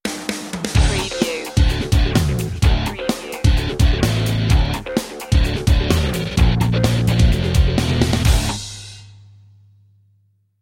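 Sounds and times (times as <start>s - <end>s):
music stinger: 0.8s - 9.1s.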